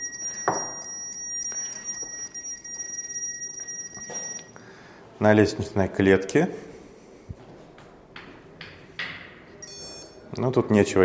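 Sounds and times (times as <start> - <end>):
obstacle detector electronic tones: 0.0 - 4.6, 9.6 - 10.2
speech: 5.2 - 6.7, 10.4 - 11.0.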